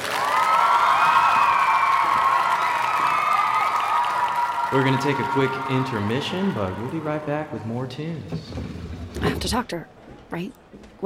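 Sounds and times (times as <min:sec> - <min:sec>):
audience applause: 0:00.0 - 0:08.2
speech: 0:04.7 - 0:11.0.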